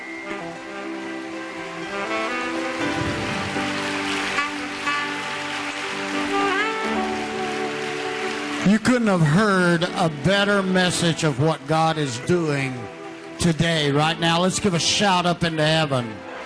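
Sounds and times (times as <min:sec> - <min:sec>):
audience clapping: 0:00.1 - 0:14.8
speech: 0:08.7 - 0:16.3.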